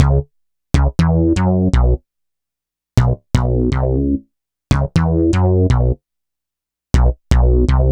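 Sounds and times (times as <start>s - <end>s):
punchy bass: 0.0s - 2.0s, 3.0s - 6.0s, 7.0s - 7.9s.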